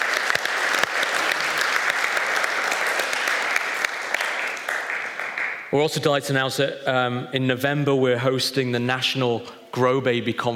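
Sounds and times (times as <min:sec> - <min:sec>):
audience applause at a church gathering: 0:00.0 - 0:05.7
speech: 0:05.7 - 0:10.5.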